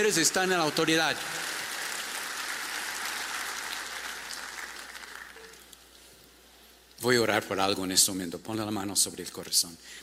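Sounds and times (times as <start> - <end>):
speech: 0.0 - 1.6, 7.0 - 10.0
audience applause: 0.0 - 5.6.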